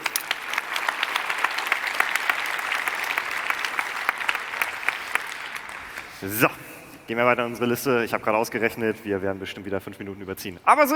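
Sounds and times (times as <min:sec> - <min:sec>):
audience applause: 0:00.0 - 0:07.1
speech: 0:06.2 - 0:10.9.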